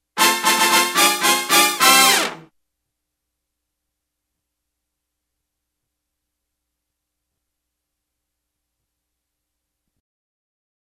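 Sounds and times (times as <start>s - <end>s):
trumpet: 0.2s - 2.5s.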